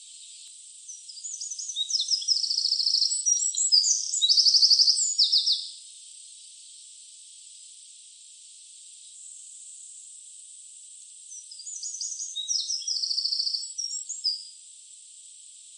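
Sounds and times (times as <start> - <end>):
Eurasian wren Troglodytes troglodytes singing a rapid high-pitched jumble: 0.0 - 5.8, 11.3 - 14.5.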